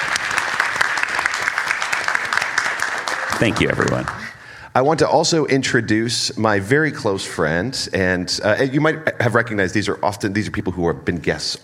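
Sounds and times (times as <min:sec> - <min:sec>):
audience applause: 0:00.0 - 0:04.4
speech: 0:03.4 - 0:11.6.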